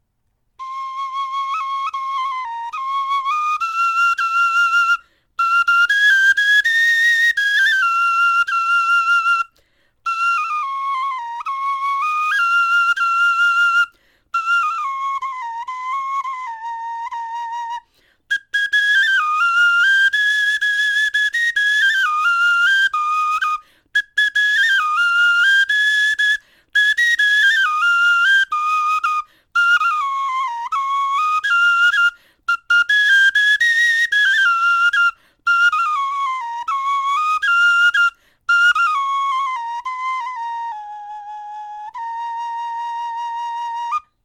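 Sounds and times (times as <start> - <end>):
bone flute melody: 0.6 - 44.2.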